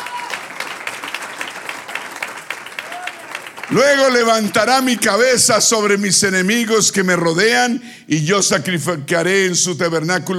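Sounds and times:
crowd applauding: 0.0 - 5.3
speech: 3.7 - 10.3.

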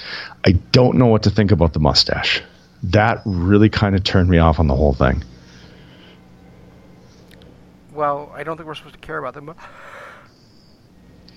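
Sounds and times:
speech: 0.4 - 5.3, 8.0 - 10.0
person yawning: 9.6 - 10.3.

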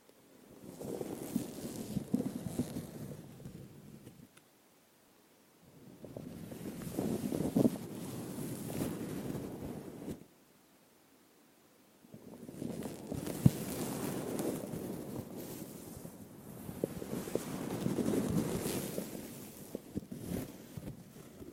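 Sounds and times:
intense brushing and rubbing against a microphone: 0.6 - 4.3, 6.0 - 10.3, 12.3 - 21.5.

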